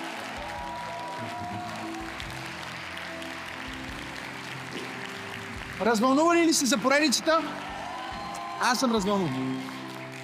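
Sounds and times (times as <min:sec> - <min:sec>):
audience applauding: 0:00.0 - 0:10.2
speech: 0:01.2 - 0:02.0, 0:05.8 - 0:07.7, 0:08.6 - 0:09.8.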